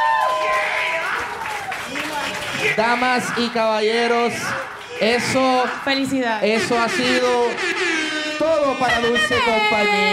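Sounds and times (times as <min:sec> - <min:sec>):
crowd clapping: 0:00.0 - 0:07.8
crowd cheering and whooping: 0:00.0 - 0:10.1
speech: 0:02.7 - 0:10.1.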